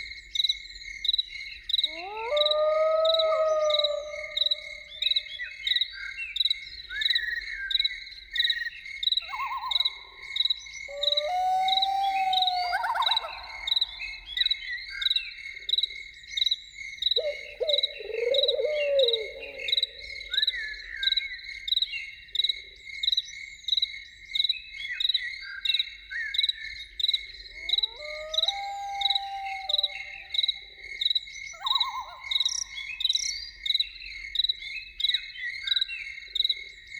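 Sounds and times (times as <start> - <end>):
crickets chirping: 0.0 - 25.8, 26.4 - 36.9
loon calls: 1.9 - 5.0, 10.9 - 14.2, 27.6 - 30.4.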